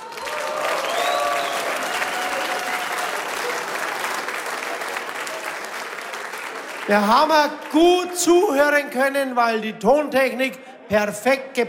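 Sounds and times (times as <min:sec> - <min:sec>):
audience applause: 0:00.0 - 0:07.8
speech: 0:06.9 - 0:11.6.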